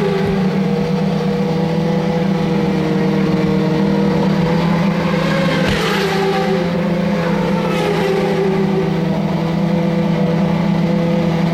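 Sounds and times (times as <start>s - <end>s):
race cars with turbocharged V8 engines roaring past: 0.0s - 11.5s.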